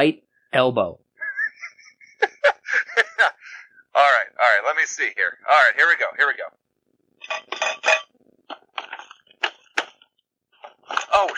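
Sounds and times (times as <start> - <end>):
speech: 0.0 - 1.0, 4.0 - 6.6, 11.2 - 11.3
laughter: 1.2 - 3.7
bowl and glasses knocked over and falling: 7.2 - 8.1.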